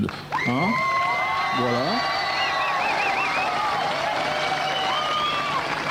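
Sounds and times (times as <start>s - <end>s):
speech: 0.0s - 0.9s, 1.6s - 2.2s
audience clapping: 0.0s - 5.9s
people cheering: 0.0s - 5.9s
whistles: 1.8s - 5.8s.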